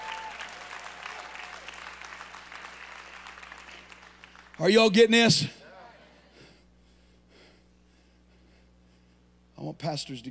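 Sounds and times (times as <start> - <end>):
audience clapping hands: 0.0 - 6.0
speech: 4.6 - 5.6, 9.9 - 10.3.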